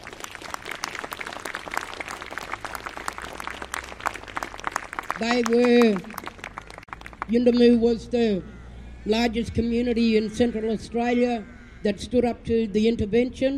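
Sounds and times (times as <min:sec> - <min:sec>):
crowd clapping: 0:00.0 - 0:07.6
speech: 0:05.2 - 0:06.1, 0:07.3 - 0:13.5.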